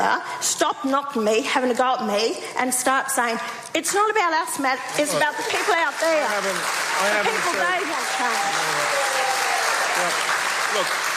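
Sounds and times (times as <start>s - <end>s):
speech: 0.0s - 9.2s, 10.0s - 11.0s
crowd cheering and applauding: 5.2s - 11.1s.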